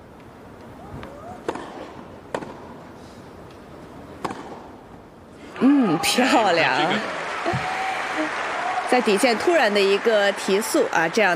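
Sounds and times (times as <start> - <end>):
tennis ball struck on a second serve in a professional match: 1.4 - 2.8, 4.2 - 4.7
speech: 5.6 - 7.7, 8.9 - 11.3.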